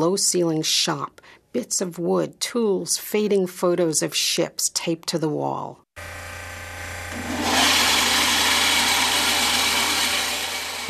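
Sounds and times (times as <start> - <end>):
speech: 0.0 - 6.2
small bandsaw cutting wood pieces: 6.0 - 10.8.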